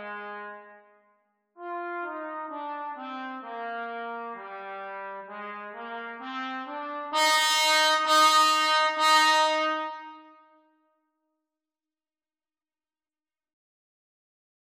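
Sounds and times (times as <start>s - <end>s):
trumpet duet: 0.0s - 1.0s, 1.6s - 10.6s.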